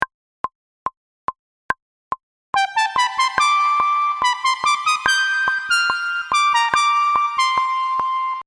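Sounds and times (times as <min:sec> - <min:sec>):
lead melody: 0:02.6 - 0:08.4.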